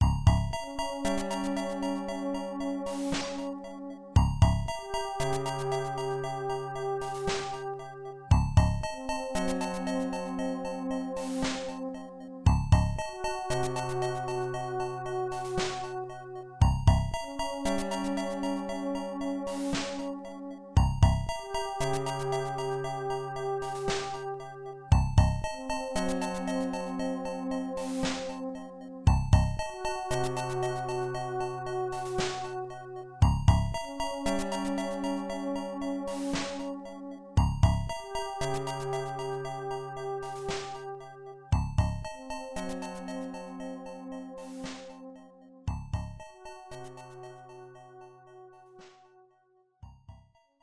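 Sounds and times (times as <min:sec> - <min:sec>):
FM synth version music: 0:00.0 - 0:49.1.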